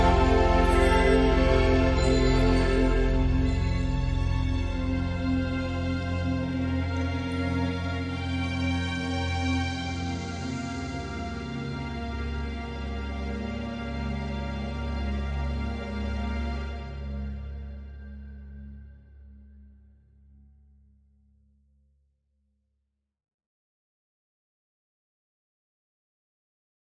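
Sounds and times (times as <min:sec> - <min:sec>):
background music: 0:00.0 - 0:19.3.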